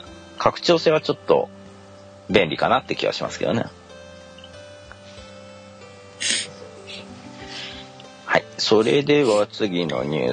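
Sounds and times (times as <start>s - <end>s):
speech: 0.4s - 1.6s, 2.3s - 3.8s, 8.6s - 10.3s
sharp breathy nose sniffing: 6.2s - 7.8s, 8.8s - 9.5s.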